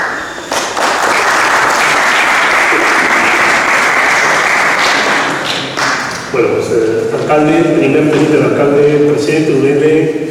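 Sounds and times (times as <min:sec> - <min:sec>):
audience applause: 0:00.0 - 0:06.3
speech: 0:06.4 - 0:10.2.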